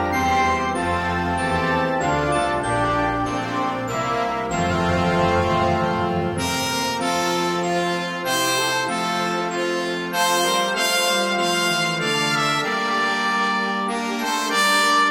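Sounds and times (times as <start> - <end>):
concert band playing a Christmas carol: 0.0 - 15.0.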